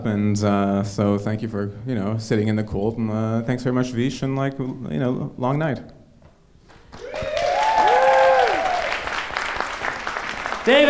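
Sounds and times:
speech: 0.0s - 6.0s, 10.6s - 10.8s
audience applause: 6.9s - 10.8s
whoops and cheers: 7.0s - 9.2s.

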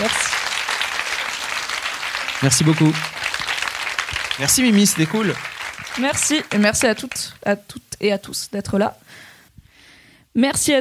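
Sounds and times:
applause: 0.0s - 7.4s
speech: 2.4s - 3.2s, 4.4s - 9.3s, 10.4s - 10.8s.

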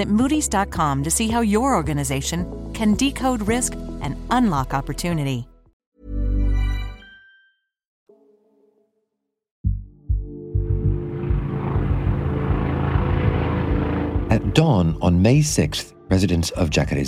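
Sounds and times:
speech: 0.0s - 5.5s, 14.6s - 17.0s
brief low tone: 9.6s - 16.1s
helicopter rotor noise overhead: 11.2s - 14.8s.

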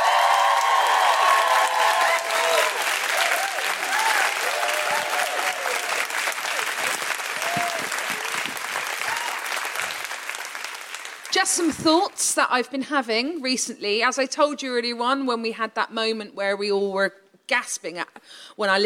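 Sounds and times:
high whooping and woohooing cheers: 0.0s - 9.9s
audience applause: 0.0s - 11.7s
speech: 11.5s - 18.8s.

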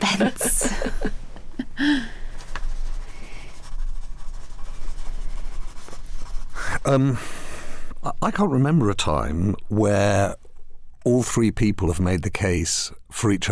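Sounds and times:
laughter: 0.0s - 2.1s
speech: 0.2s - 0.7s, 6.9s - 7.3s, 8.0s - 10.4s, 11.0s - 13.5s
pen scratching on paper writing a note: 2.4s - 6.6s.

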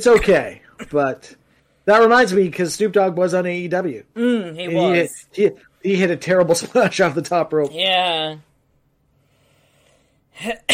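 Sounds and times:
person coughing: 0.0s - 1.0s, 10.4s - 10.7s
speech: 0.0s - 8.5s, 10.4s - 10.7s.

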